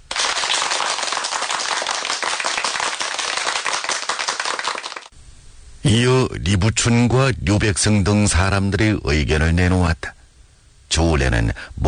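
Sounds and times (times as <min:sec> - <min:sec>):
applause from around the room: 0:00.0 - 0:05.1
speech: 0:05.9 - 0:10.1, 0:10.9 - 0:11.8.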